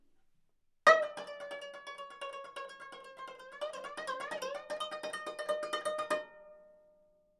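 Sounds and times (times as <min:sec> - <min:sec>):
gayageum playing ornamental technique: 0:00.9 - 0:06.4.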